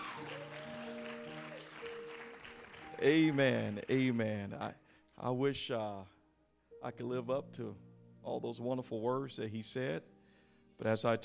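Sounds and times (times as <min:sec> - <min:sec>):
audience clapping hands: 0:00.0 - 0:04.1
speech: 0:03.0 - 0:06.2, 0:06.8 - 0:10.1, 0:10.8 - 0:11.2.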